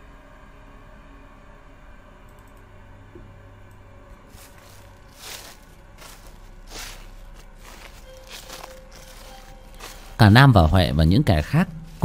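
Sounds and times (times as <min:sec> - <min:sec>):
footsteps rustling through dry leaves: 0:04.3 - 0:12.0
speech: 0:10.2 - 0:12.0.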